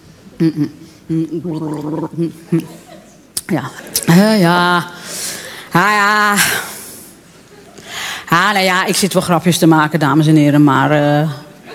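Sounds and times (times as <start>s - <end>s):
speech: 0.4s - 2.8s, 3.5s - 5.1s, 5.7s - 6.7s, 8.4s - 11.4s
person drinking a glass of water: 1.3s - 2.7s.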